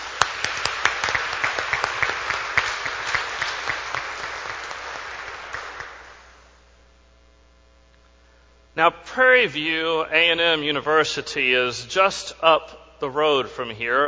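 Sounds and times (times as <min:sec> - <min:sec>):
audience applause: 0:00.0 - 0:06.4
speech: 0:08.8 - 0:14.0.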